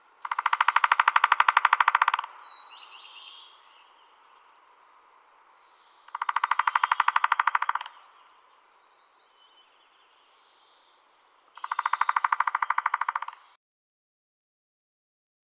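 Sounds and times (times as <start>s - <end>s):
three-toed woodpecker Picoides tridactylus: 0.0s - 4.0s, 5.6s - 13.6s.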